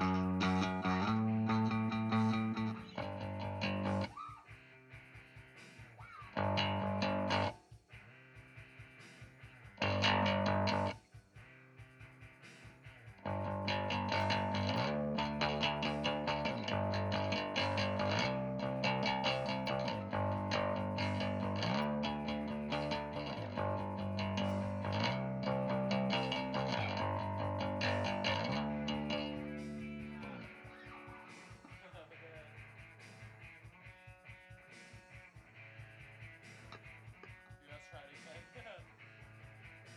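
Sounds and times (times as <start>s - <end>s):
bass playing: 0.0s - 4.1s, 6.3s - 7.5s, 9.4s - 11.0s, 13.2s - 31.7s.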